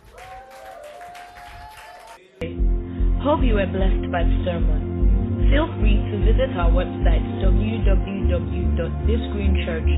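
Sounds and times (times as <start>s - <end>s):
audience clapping applause: 0.0s - 2.4s
speech: 3.2s - 9.9s.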